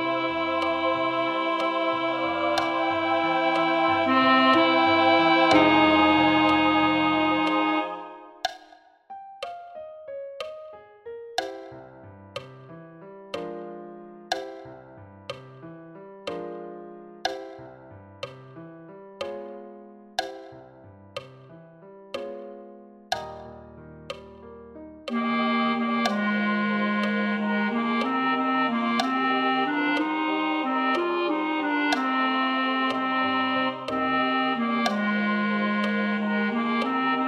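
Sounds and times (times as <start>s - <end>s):
wedding chorus: 0.0s - 8.4s, 25.1s - 37.2s.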